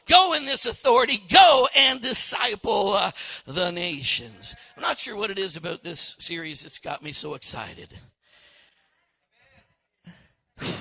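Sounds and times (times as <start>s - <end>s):
speech: 0.1s - 8.1s
preacher breathing heavily mid-sermon: 3.2s - 3.5s.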